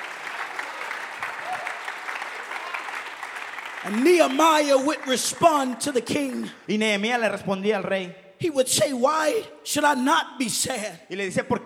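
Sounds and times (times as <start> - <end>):
audience clapping hands: 0.0 - 6.7
speech: 3.8 - 11.6.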